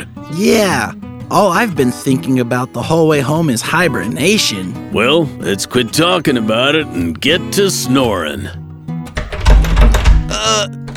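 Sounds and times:
speech: 0.3 - 8.6
locked door thudding and rattling when shoved: 9.2 - 10.9
short strained vocal grunt: 10.3 - 10.7.

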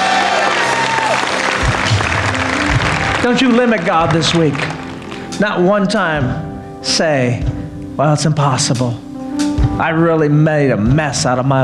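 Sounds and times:
audience clapping loudly: 0.0 - 5.4
speech: 3.3 - 4.7, 5.4 - 9.0, 9.8 - 11.6.

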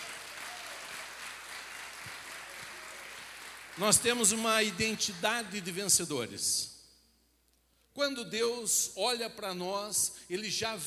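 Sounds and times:
audience applauding: 0.0 - 6.0
speech: 3.8 - 6.7, 8.0 - 10.8.

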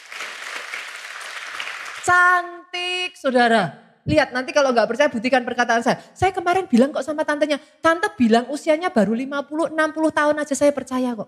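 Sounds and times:
audience applause for a 70-year-old woman: 0.0 - 2.1
speech: 2.0 - 11.2.

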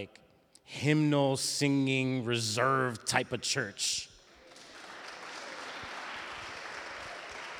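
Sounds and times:
speech: 0.0 - 4.1
audience clapping hands: 4.3 - 7.5.

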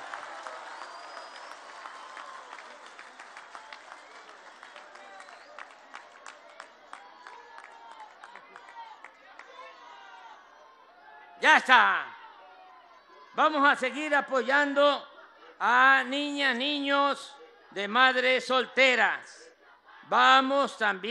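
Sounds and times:
applause: 0.0 - 10.3
speech: 11.4 - 12.1, 13.4 - 19.4, 20.1 - 21.0.

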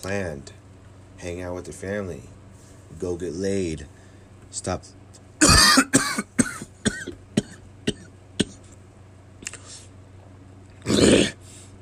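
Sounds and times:
speech: 0.0 - 0.6, 1.2 - 5.9
man coughing to clear something stuck in his throat: 5.4 - 8.6.

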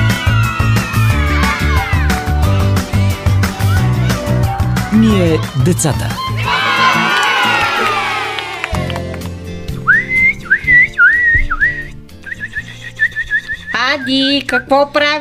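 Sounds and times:
group of children shouting and cheering: 0.0 - 9.3
speech: 5.2 - 6.2, 14.0 - 15.1
person whistling a bird imitation: 9.9 - 14.8.

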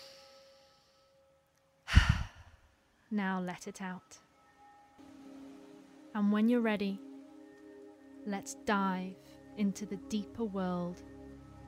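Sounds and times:
deep breath in during a guided relaxation exercise: 1.9 - 2.6
speech: 3.1 - 4.2, 6.1 - 7.1, 8.2 - 11.1.

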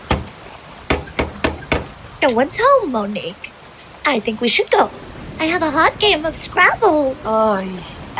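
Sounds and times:
knocking with a gargoyle-shaped door knocker: 0.9 - 1.9
speech: 2.2 - 8.1.

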